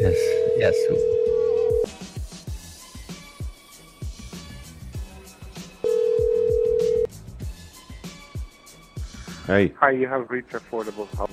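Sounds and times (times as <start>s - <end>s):
speech: 0.0s - 1.2s, 9.5s - 11.3s
telephone ringing tones of an outgoing call: 0.0s - 1.9s, 5.8s - 7.1s
busy rhythmic sound: 0.0s - 9.7s.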